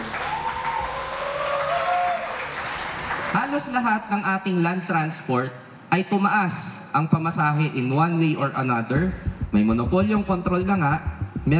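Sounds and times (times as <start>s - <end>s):
audience applause for the convener of a commuters' network campaign: 0.0s - 3.4s
speech: 3.5s - 11.5s.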